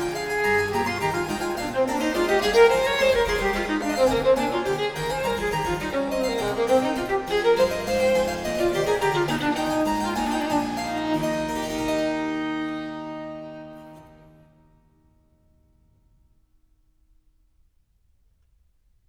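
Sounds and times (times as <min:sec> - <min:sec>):
harpsichord in a sonata allegro: 0:00.0 - 0:14.0
violin in a sonata allegro: 0:00.0 - 0:14.6.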